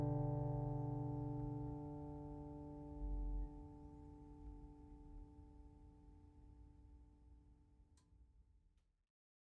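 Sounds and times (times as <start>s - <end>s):
steel-string flattop guitar of flamed maple and German spruce: 0.0s - 3.9s.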